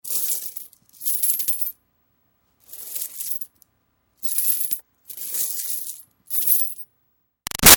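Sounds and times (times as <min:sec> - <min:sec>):
coins sweeping around and dropping lightly: 0:00.1 - 0:01.7, 0:02.7 - 0:03.5, 0:04.2 - 0:06.8.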